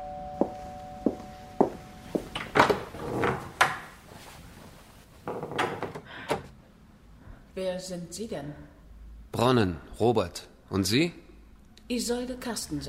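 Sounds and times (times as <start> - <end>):
door being opened: 2.2 - 4.0, 5.2 - 6.5
speech: 7.6 - 11.2, 11.9 - 12.8.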